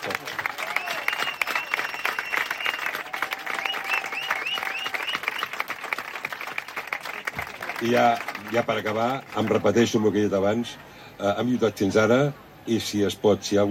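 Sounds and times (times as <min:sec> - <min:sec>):
loud applause: 0:00.0 - 0:09.7
speech: 0:07.8 - 0:13.6.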